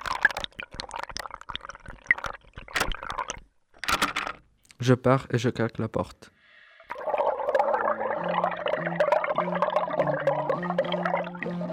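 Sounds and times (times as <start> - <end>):
water poured into a bowl: 0.0 - 3.4, 6.8 - 11.7
speech: 4.8 - 6.4.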